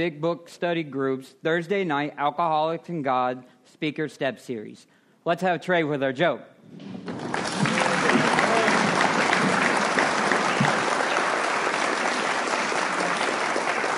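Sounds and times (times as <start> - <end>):
speech: 0.0 - 7.5
audience applause: 6.8 - 13.9.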